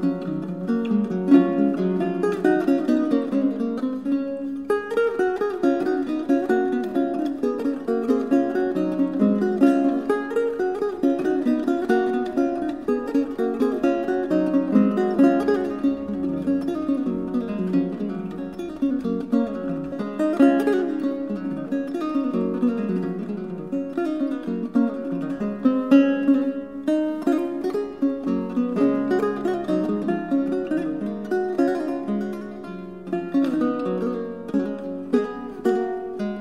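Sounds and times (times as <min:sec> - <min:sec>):
guitar: 0:00.0 - 0:36.3.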